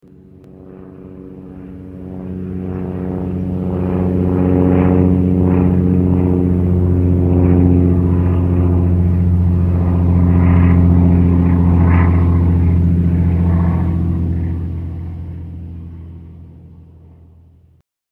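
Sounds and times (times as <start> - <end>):
airplane: 0.0 - 17.9.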